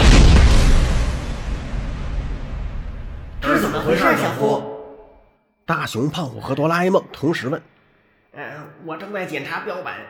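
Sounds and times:
monster crashing into a wall: 0.0s - 3.5s
speech: 5.7s - 7.7s, 8.4s - 10.0s.

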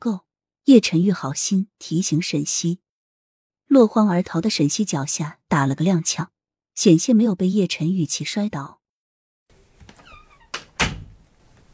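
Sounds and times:
speech: 0.0s - 2.8s, 3.7s - 8.8s
bedroom door closing: 9.5s - 11.7s.

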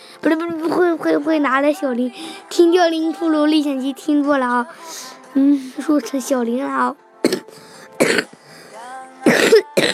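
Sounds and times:
speech: 0.2s - 8.1s
person coughing: 7.2s - 8.4s, 9.2s - 9.9s.

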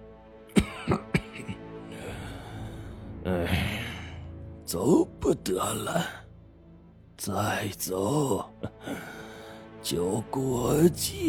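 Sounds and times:
elderly person coughing: 0.5s - 1.6s
speech: 4.7s - 6.2s, 7.2s - 8.5s, 9.9s - 11.2s.

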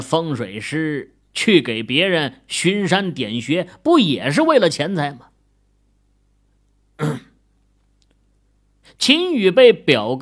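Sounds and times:
speech: 0.0s - 5.3s, 7.0s - 7.2s, 9.0s - 10.2s
throat clearing cough: 7.0s - 7.4s.

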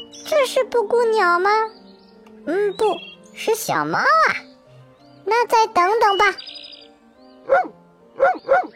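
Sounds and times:
speech: 0.3s - 1.8s, 2.4s - 4.5s, 5.2s - 6.5s, 7.5s - 8.7s
dog barking: 7.4s - 8.7s.

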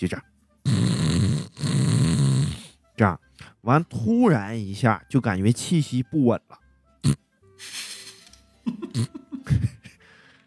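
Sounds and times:
speech: 0.0s - 0.3s, 3.0s - 7.8s, 8.7s - 9.2s
person imitating loud snoring: 0.6s - 2.8s
laughter: 8.6s - 10.0s.

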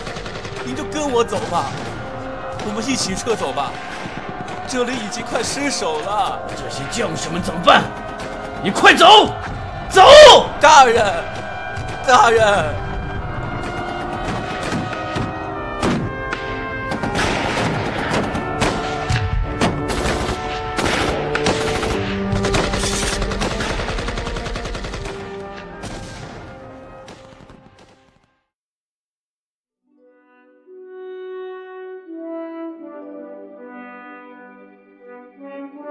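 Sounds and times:
rapid gunfire in battle scene: 0.0s - 5.8s, 6.4s - 9.9s, 13.4s - 28.2s
speech: 0.6s - 1.9s, 2.6s - 4.1s, 4.7s - 11.4s, 12.0s - 12.8s.

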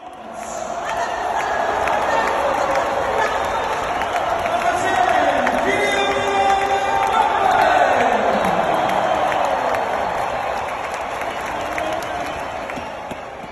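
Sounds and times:
stadium crowd roaring and shouting after a goal: 0.0s - 13.5s.

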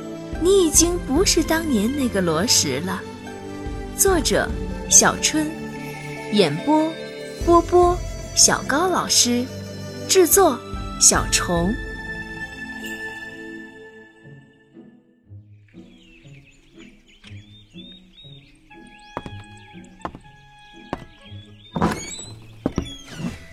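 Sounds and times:
speech: 0.4s - 3.1s, 4.0s - 5.6s, 6.3s - 11.8s
door creaking open: 19.2s - 23.5s
soft thuds and knocks: 19.2s - 23.5s.

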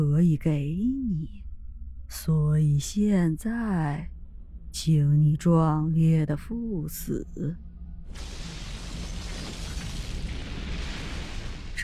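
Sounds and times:
speech: 0.0s - 1.4s, 2.1s - 4.1s, 4.7s - 8.4s
explosion of rocks: 8.1s - 11.8s.

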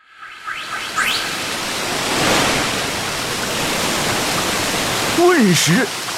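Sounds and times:
rising whistle-like sweep: 0.0s - 4.5s
river water being sucked upward: 0.0s - 6.1s
speech: 5.4s - 6.0s.

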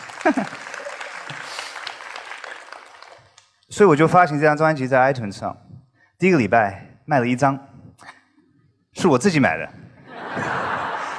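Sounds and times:
laughter: 0.0s - 1.6s, 10.0s - 11.1s
applause: 0.0s - 3.5s
speech: 0.2s - 0.7s, 3.8s - 7.7s, 9.0s - 9.8s.

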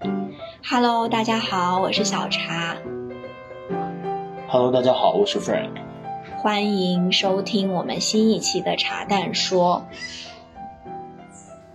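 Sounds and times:
speech: 0.6s - 3.0s, 4.5s - 10.3s
call of a large black bird with big yellow beak: 9.9s - 10.5s.

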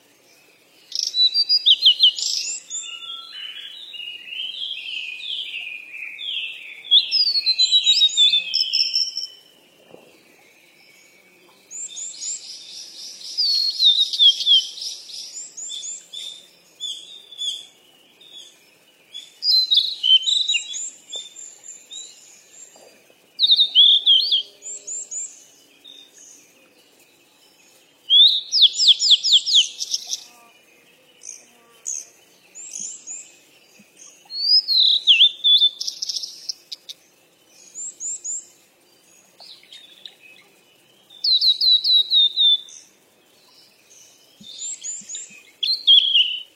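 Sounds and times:
birds chirping: 0.0s - 46.5s.

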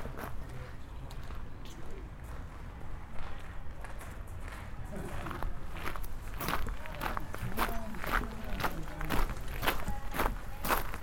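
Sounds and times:
faint voices: 0.0s - 11.0s
footsteps crunching along a walk at Nijō Castle in Kyoto: 3.1s - 11.0s.

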